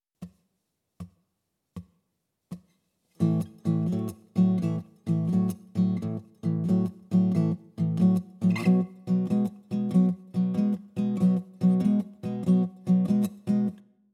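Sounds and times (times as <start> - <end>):
blues guitar in open tunings: 3.2 - 13.8.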